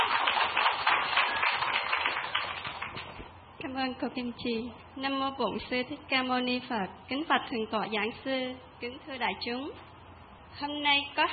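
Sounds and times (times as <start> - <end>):
round of applause: 0.0 - 3.2
speech: 3.8 - 9.9, 10.6 - 11.3.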